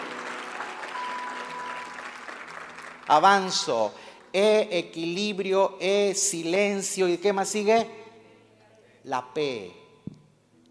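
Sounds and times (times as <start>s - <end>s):
audience applause: 0.0s - 3.2s
speech: 3.1s - 8.0s, 9.0s - 9.8s.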